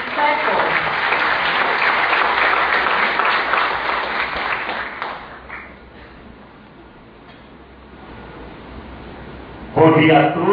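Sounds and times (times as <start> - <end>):
audience applause: 0.0 - 5.8
speech: 9.8 - 10.5.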